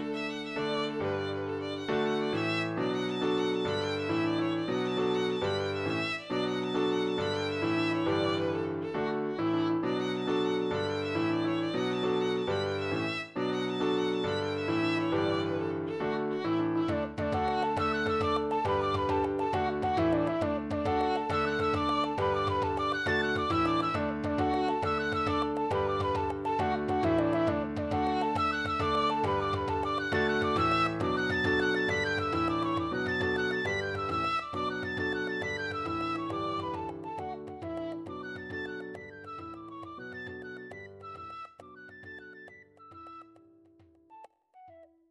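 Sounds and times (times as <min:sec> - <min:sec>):
jig tune: 0:00.1 - 0:43.4.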